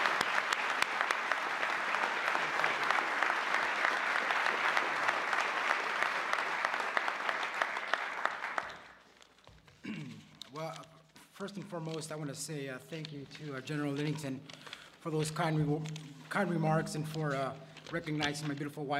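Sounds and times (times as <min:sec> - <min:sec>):
audience applause: 0:00.0 - 0:09.0
speech: 0:11.4 - 0:18.9.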